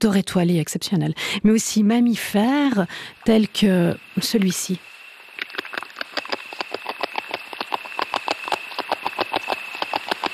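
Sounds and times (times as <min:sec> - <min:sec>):
speech: 0:00.0 - 0:04.9
faint steady high whine: 0:00.7 - 0:10.3
beaver gnawing wood: 0:05.4 - 0:10.3.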